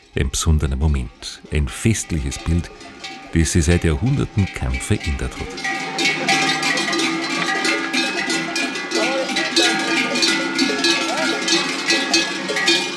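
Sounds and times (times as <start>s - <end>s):
cowbells of cattle driven down from mountain: 0.0s - 12.9s
speech: 0.2s - 6.4s.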